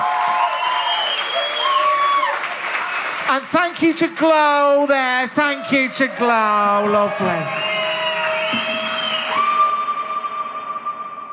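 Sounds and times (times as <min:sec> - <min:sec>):
applause: 0:00.0 - 0:05.5, 0:06.8 - 0:09.7
speech: 0:03.3 - 0:07.8.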